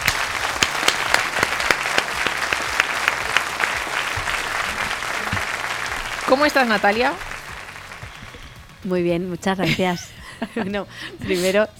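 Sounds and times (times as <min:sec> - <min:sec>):
applause: 0:00.0 - 0:08.8
speech: 0:06.3 - 0:07.3, 0:08.8 - 0:11.7.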